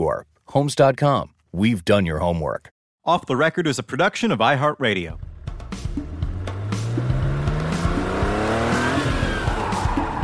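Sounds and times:
speech: 0.0s - 6.0s
car tires squealing on concrete while doing donuts: 6.4s - 10.2s.

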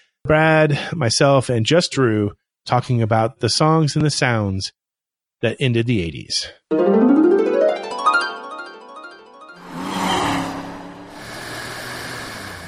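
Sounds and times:
speech: 0.2s - 4.8s, 5.4s - 7.4s
car engine accelerating on the road to Orlando: 9.6s - 12.6s
road noise: 9.6s - 12.6s.

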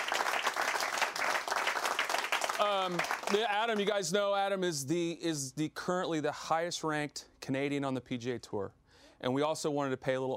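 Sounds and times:
audience clapping at a live golf-themed show: 0.0s - 4.0s
speech: 2.6s - 10.3s.

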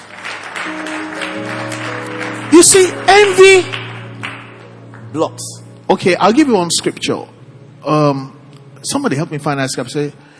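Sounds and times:
audience clapping: 0.0s - 5.6s
low sustained keyboard or organ notes: 0.2s - 10.3s
speech: 2.6s - 3.8s, 5.2s - 10.3s.

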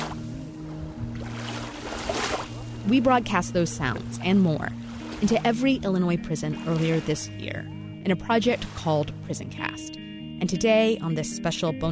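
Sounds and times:
waves of Lake Michigan: 0.0s - 9.4s
speech: 2.9s - 11.9s.

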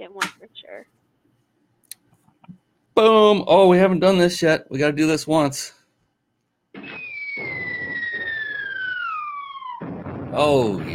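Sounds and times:
speech: 0.0s - 1.1s, 3.0s - 5.8s, 10.4s - 10.9s
falling-bomb whistle sound effect: 6.8s - 10.4s.

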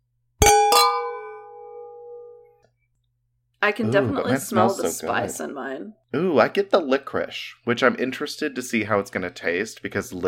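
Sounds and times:
wine glasses clinking in a toast: 0.4s - 2.5s
speech: 3.6s - 10.2s.

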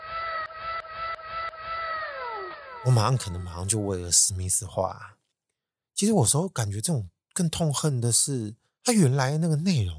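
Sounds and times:
canned childlike wow sound effect: 0.0s - 3.8s
speech: 2.8s - 5.2s, 6.0s - 9.9s.

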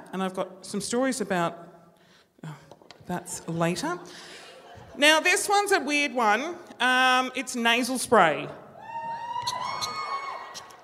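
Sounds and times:
speech: 0.1s - 1.7s, 2.4s - 4.4s, 5.0s - 8.6s
live audience cheering: 8.8s - 10.8s.

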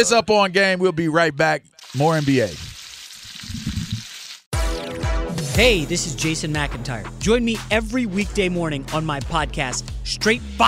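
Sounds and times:
speech: 0.0s - 2.7s, 5.6s - 10.6s
bacon crackling in frying grease: 1.8s - 4.5s.

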